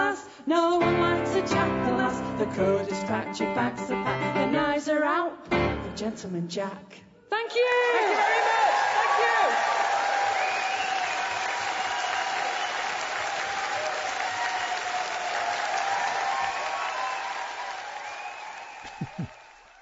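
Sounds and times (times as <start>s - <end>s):
speech: 0.5s - 8.6s
audience applause after live folk concert song at St. George's Hall: 7.7s - 19.7s.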